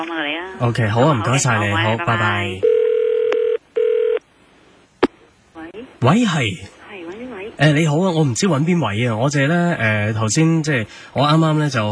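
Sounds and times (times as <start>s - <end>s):
speech: 0.0s - 2.7s, 6.0s - 6.7s, 7.6s - 11.8s
long steady electronic telephone tones: 2.6s - 4.2s.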